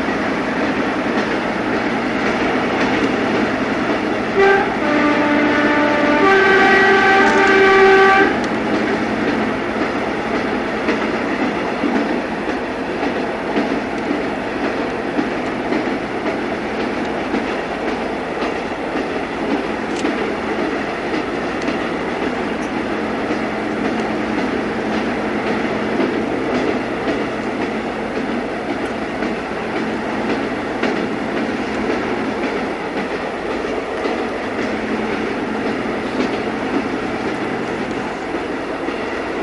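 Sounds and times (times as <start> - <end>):
train interior: 0.0 - 39.4.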